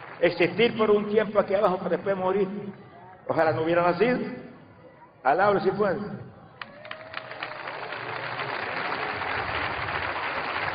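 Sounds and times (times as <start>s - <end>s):
speech: 0.2s - 4.5s, 5.2s - 6.3s
audience applause: 6.6s - 10.7s.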